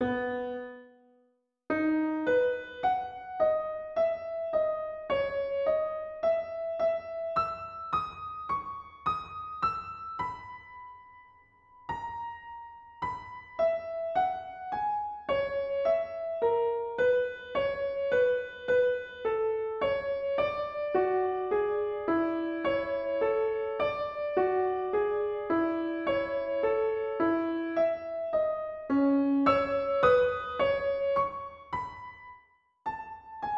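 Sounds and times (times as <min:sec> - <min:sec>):
piano sonata in E major: 0:00.0 - 0:33.5.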